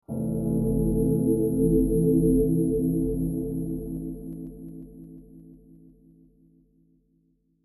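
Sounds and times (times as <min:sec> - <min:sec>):
background music: 0:00.1 - 0:05.5.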